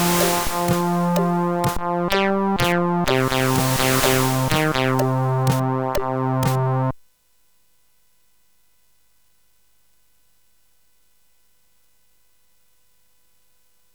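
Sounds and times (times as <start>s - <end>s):
CSG 8580 synthesizer chip sound: 0.0s - 6.9s.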